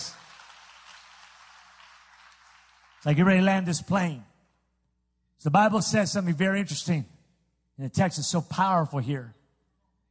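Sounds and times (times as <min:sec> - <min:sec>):
audience applause: 0:00.0 - 0:03.5
speech: 0:03.0 - 0:04.3, 0:05.4 - 0:07.2, 0:07.8 - 0:09.4.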